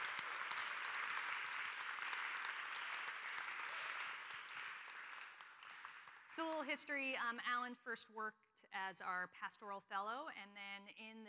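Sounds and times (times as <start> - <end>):
applause: 0.0 - 7.0
speech: 6.4 - 11.2.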